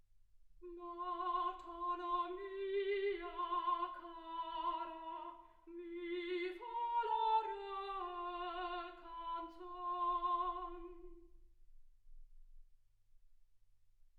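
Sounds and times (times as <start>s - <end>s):
soprano singing: 0.6s - 11.4s.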